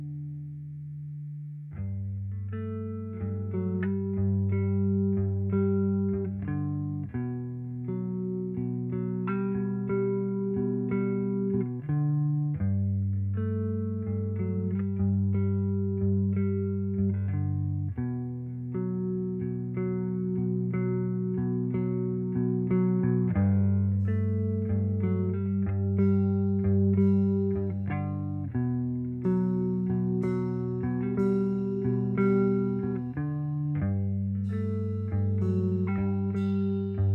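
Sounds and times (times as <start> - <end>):
M201 mono bass: 0.0 - 37.1.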